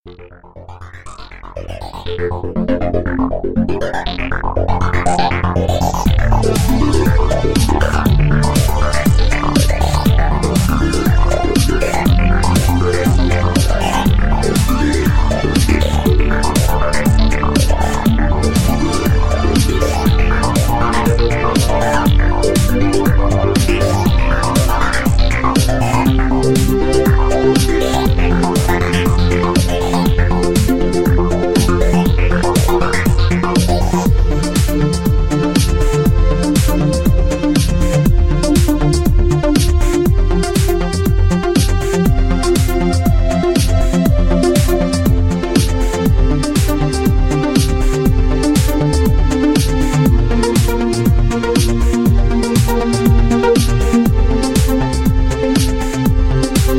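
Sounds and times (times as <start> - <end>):
electro synth waves: 0.1 - 56.7.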